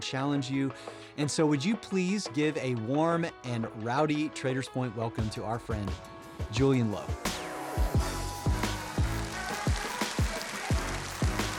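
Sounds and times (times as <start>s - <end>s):
speech: 0.0s - 7.3s
audience applause: 8.0s - 11.5s.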